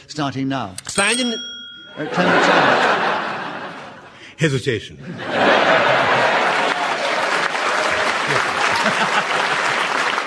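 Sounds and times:
speech: 0:00.0 - 0:03.1, 0:04.4 - 0:06.0
laughter: 0:01.9 - 0:04.3, 0:05.0 - 0:10.2
audience applause: 0:05.4 - 0:10.2.

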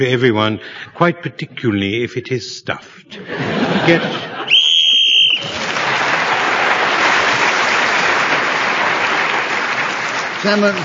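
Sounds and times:
speech: 0:00.0 - 0:04.3, 0:10.4 - 0:10.8
laughter: 0:03.1 - 0:04.7
whistle blown to end the round: 0:04.5 - 0:05.6
loud sustained applause: 0:04.5 - 0:10.8.

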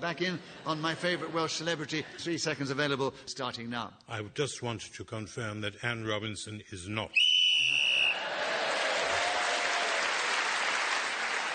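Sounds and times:
speech: 0:00.0 - 0:07.3
whistle blown to end the round: 0:07.2 - 0:08.2
applause: 0:08.0 - 0:11.5.

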